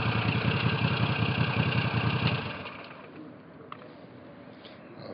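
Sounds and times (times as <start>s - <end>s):
Moto Guzzi V9 motorcycle engine: 0.0s - 3.2s.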